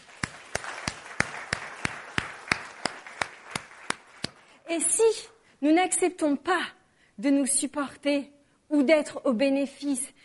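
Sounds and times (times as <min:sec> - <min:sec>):
audience applause: 0:00.0 - 0:04.6
speech: 0:04.7 - 0:10.2.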